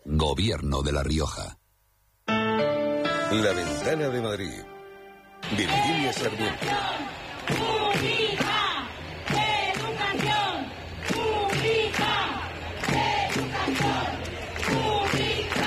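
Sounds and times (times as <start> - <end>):
speech: 0.2 - 1.6, 3.3 - 4.7, 5.4 - 8.2
protest march crowd chanting a slogan during an education strike in Madrid: 5.4 - 15.6.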